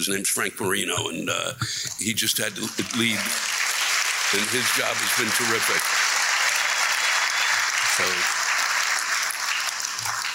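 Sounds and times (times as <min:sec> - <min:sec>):
speech: 0:00.0 - 0:03.6, 0:04.3 - 0:06.0
audience applause: 0:02.4 - 0:10.3.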